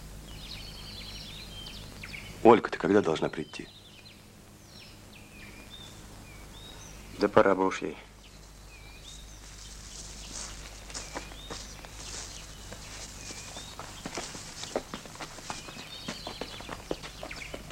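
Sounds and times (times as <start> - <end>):
speech: 2.4 - 3.8, 7.2 - 8.1
people running through a forest: 9.8 - 17.7.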